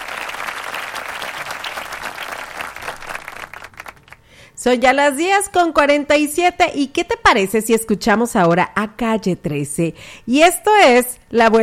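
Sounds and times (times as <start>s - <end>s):
applause: 0.0s - 4.4s
speech: 4.6s - 11.6s.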